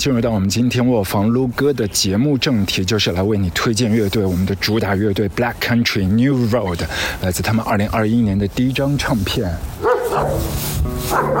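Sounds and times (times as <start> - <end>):
speech: 0.0 - 11.3
fierce dog barking and growling: 9.8 - 11.3.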